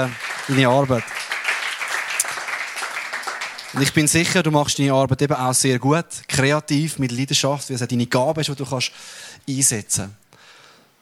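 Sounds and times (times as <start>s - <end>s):
speech: 0.0s - 1.2s, 3.7s - 10.3s
audience applauding: 0.0s - 4.5s.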